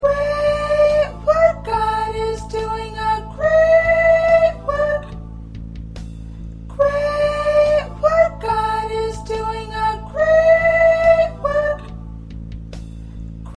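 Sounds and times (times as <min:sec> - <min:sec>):
first soprano singing: 0:00.0 - 0:05.3, 0:06.7 - 0:12.1.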